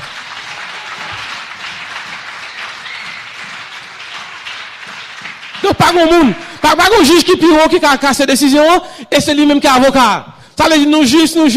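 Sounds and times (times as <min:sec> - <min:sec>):
applause: 0:00.0 - 0:06.9
speech: 0:05.8 - 0:11.5.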